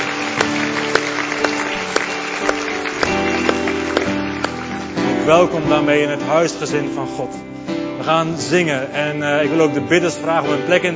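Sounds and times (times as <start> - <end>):
crowd applauding: 0.0 - 5.7
speech: 5.3 - 10.9.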